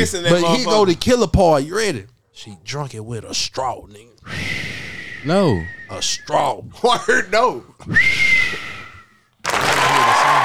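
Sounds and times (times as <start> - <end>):
speech: 0.0 - 8.3
hand clapping: 9.4 - 10.4.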